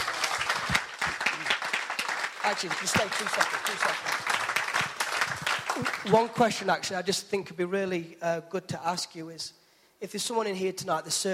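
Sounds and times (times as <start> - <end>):
audience applause: 0.0 - 6.4
speech: 2.5 - 4.5, 5.8 - 11.3.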